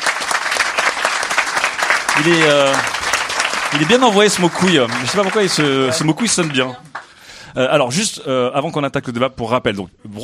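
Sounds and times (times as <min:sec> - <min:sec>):
audience applause: 0:00.0 - 0:07.2
speech: 0:02.2 - 0:03.0, 0:03.7 - 0:07.0, 0:07.6 - 0:10.2.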